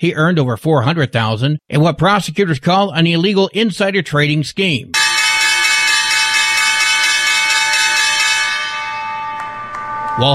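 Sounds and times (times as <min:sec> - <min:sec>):
speech: 0:00.0 - 0:05.0
stock exchange closing bell ringing: 0:05.0 - 0:10.3.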